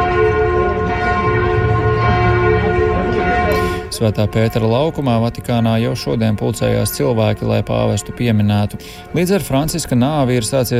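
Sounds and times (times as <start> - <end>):
large cathedral bells ringing: 0.0 - 10.7
speech: 4.0 - 10.7.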